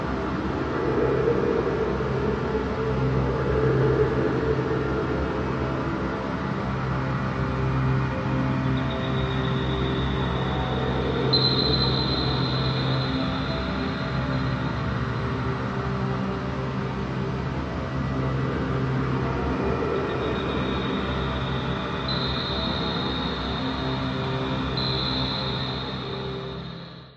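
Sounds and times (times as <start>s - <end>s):
dark menacing airy science fiction atmosphere: 0.0s - 27.1s
high-pitched shrill tone: 11.3s - 13.8s, 24.8s - 27.1s.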